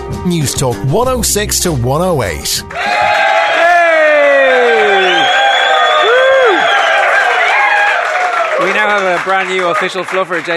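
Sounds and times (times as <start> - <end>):
speech: 0.2 - 3.4, 8.8 - 10.5
loud crowd cheering and whooping: 2.7 - 9.0.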